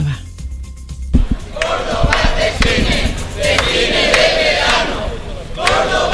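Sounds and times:
protest crowd chanting: 0:01.3 - 0:06.1.

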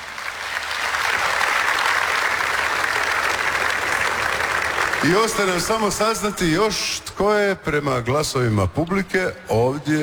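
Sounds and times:
audience applause in the town square of Požega: 0:00.0 - 0:05.9
speech: 0:05.0 - 0:10.0.

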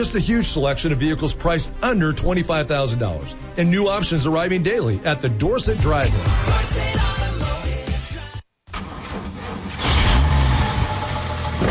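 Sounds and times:
speech: 0:00.0 - 0:07.2
diesel engine of heavy construction equipment roaring: 0:08.8 - 0:11.6.

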